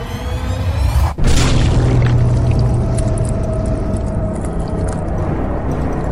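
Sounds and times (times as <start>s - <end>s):
wet squelching and splattering: 1.2s - 5.3s
crushing impact: 1.2s - 6.1s
low rumble: 1.2s - 6.1s.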